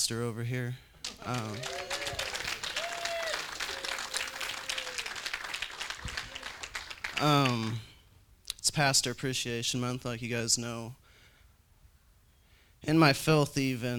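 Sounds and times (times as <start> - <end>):
speech: 0.0 - 1.8, 7.2 - 7.9, 8.6 - 11.0, 12.8 - 13.9
round of applause: 1.0 - 7.9.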